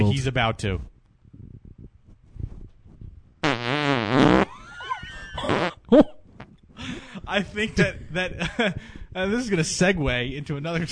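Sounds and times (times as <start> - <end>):
speech: 0.1 - 0.9, 5.9 - 6.2, 7.3 - 10.9
fart: 3.4 - 4.6, 5.4 - 5.9.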